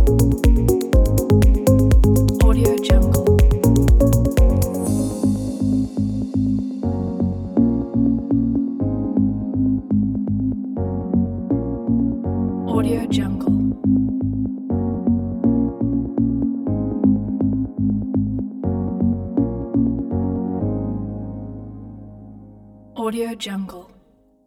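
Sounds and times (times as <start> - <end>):
upbeat minimal corporate tech music: 0.0 - 22.1.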